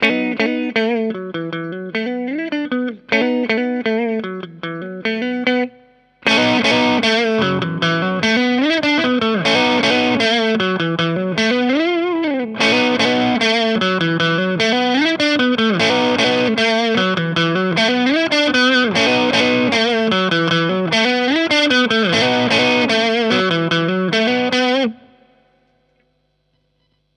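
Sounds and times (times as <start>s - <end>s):
overdrive distortion: 0.0s - 27.1s.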